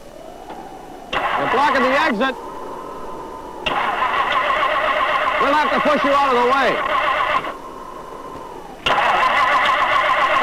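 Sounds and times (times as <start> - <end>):
speech: 1.4 - 2.5, 5.4 - 7.0
car engine cranking with a frozen gas line: 3.6 - 7.6, 8.2 - 10.4.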